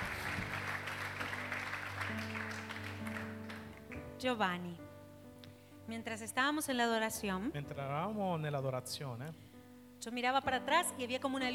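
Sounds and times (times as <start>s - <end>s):
crowd applause: 0.0s - 4.0s
speech: 4.2s - 4.9s, 5.9s - 9.4s, 10.0s - 11.5s.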